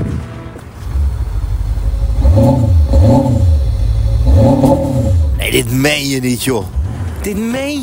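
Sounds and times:
diesel car engine starting and revving: 0.8s - 7.8s
speech: 5.6s - 7.8s.

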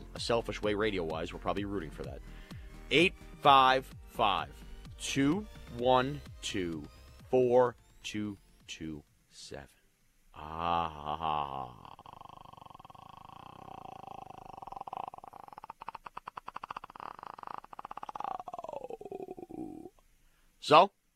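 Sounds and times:
speech: 0.2s - 9.8s, 10.4s - 12.0s, 20.7s - 21.0s
long growling throat clearing: 10.4s - 19.9s.

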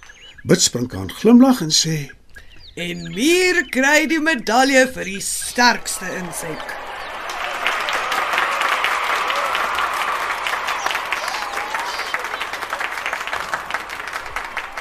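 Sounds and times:
speech: 0.4s - 2.2s, 2.8s - 6.8s
crowd clapping: 5.6s - 14.7s.

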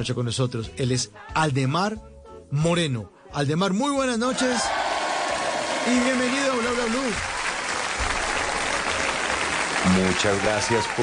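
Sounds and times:
speech: 0.0s - 4.8s, 5.8s - 7.4s, 9.8s - 11.0s
studio audience applause: 4.4s - 11.0s.

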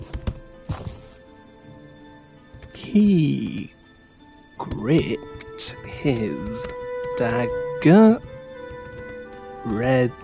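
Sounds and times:
footsteps approaching a tent: 0.0s - 1.3s
speech: 2.9s - 3.8s, 4.8s - 8.3s, 9.8s - 10.2s.

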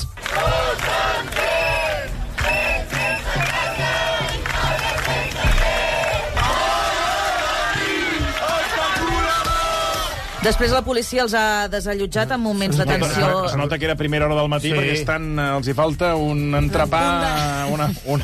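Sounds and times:
protesters chanting at a demonstration: 0.2s - 10.4s
speech: 10.4s - 18.2s.

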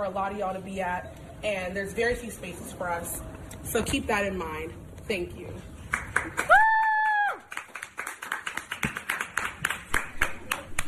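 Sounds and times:
speech: 0.0s - 6.6s
audience hand clapping at a university: 5.9s - 6.6s, 7.4s - 10.8s
person whooping: 6.4s - 7.5s.

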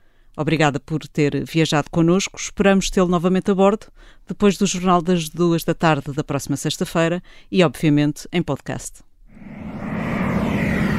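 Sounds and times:
speech: 0.4s - 9.8s
airplane engine: 9.3s - 10.9s.

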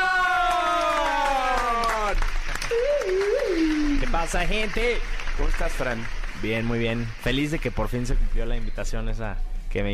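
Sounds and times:
applause: 0.0s - 8.6s
speech: 4.2s - 9.9s.

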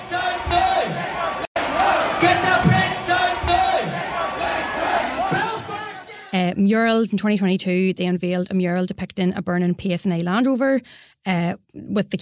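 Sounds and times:
concert crowd chanting: 0.0s - 6.4s
speech: 0.1s - 1.0s, 6.6s - 12.2s.

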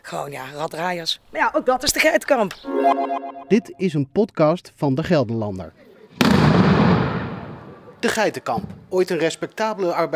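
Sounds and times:
speech: 0.1s - 5.8s, 8.0s - 10.1s
firework bang with crackling, rumbling tail: 6.2s - 7.7s.

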